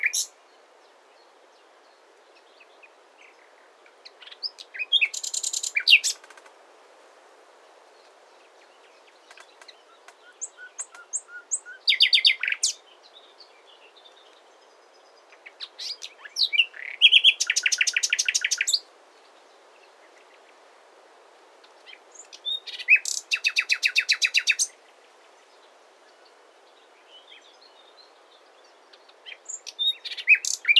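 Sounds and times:
common nightingale Luscinia megarhynchos song: 0:00.0 - 0:06.6, 0:07.6 - 0:30.7.

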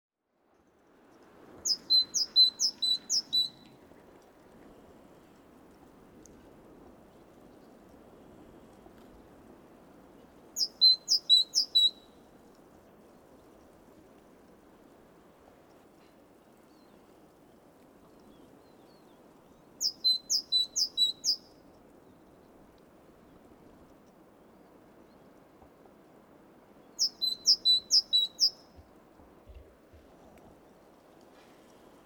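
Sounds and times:
quiet hiss: 0:00.3 - 0:32.0
great tit singing two-note phrases: 0:01.7 - 0:03.6, 0:10.6 - 0:12.0, 0:19.8 - 0:21.5, 0:27.0 - 0:28.7.

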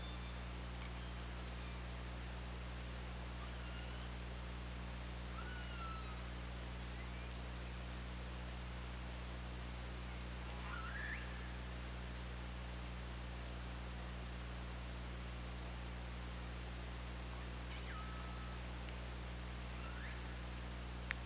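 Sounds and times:
low constant hum: 0:00.0 - 0:21.2
killer whale calls: 0:05.4 - 0:06.2, 0:10.6 - 0:11.6.

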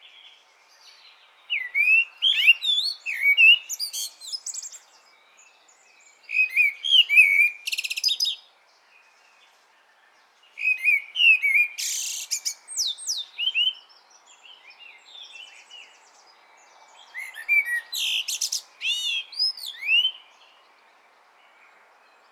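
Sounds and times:
Common blackbird song: 0:00.0 - 0:22.3.

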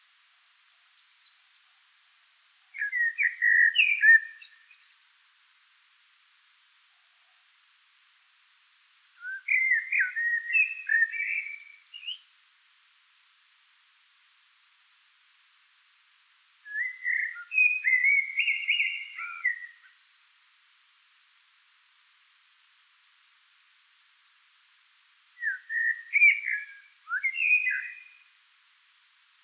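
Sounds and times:
Common blackbird singing: 0:02.8 - 0:04.8, 0:09.2 - 0:12.2, 0:16.7 - 0:19.9, 0:25.4 - 0:28.3.

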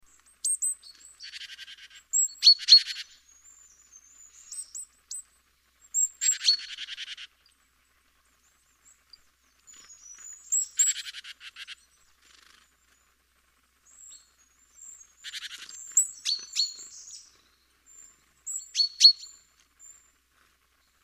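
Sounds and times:
great tit calling: 0:00.4 - 0:05.2, 0:05.9 - 0:07.4, 0:09.7 - 0:12.7, 0:13.9 - 0:20.0.

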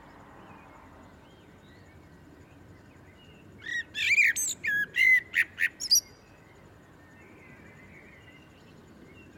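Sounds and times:
Common blackbird Turdus merula whistling and twittering: 0:03.6 - 0:06.2.

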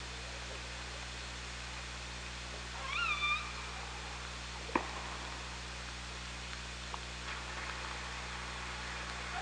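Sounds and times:
underwater hiss and low hum: 0:00.0 - 0:09.3
killer whale call: 0:02.8 - 0:03.9.

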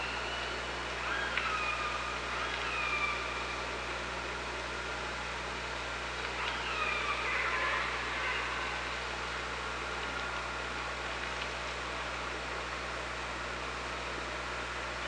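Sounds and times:
killer whale calls: 0:00.0 - 0:03.7, 0:06.4 - 0:09.0
low hum: 0:00.0 - 0:15.0.

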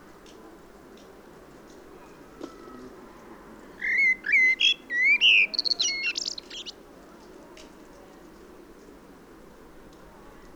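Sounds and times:
common blackbird Turdus merula singing: 0:03.8 - 0:06.8.

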